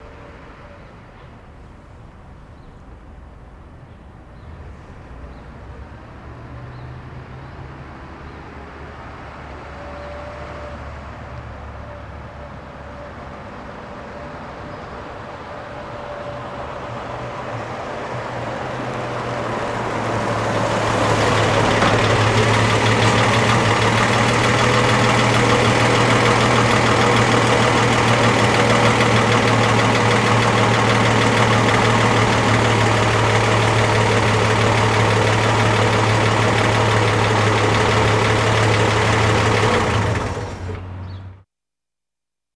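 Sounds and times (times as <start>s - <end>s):
1946 Chevy truck engine idling then switched off: 18.3s - 41.1s.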